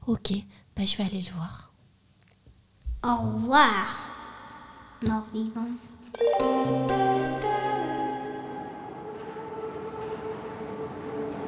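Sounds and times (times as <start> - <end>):
speech: 0.1 - 1.7, 3.0 - 4.1, 5.0 - 7.3
metro train electric whine at Pont de Neuilly station: 8.1 - 11.4.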